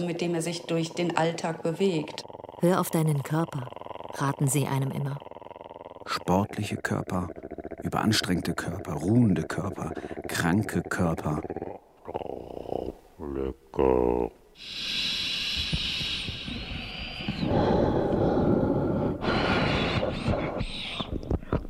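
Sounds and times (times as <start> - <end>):
speech: 0.0 - 5.3, 6.1 - 11.6, 13.4 - 15.0
wheezing whistling breathing: 14.6 - 21.6.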